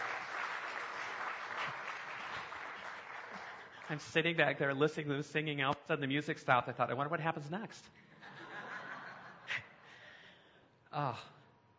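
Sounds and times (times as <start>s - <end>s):
audience applause: 0.0s - 4.1s
speech: 3.9s - 8.0s, 10.9s - 11.4s.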